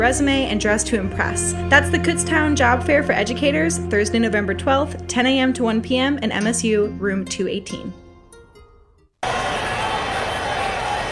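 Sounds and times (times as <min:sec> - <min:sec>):
speech: 0:00.0 - 0:08.0
stadium crowd roaring: 0:09.2 - 0:11.1.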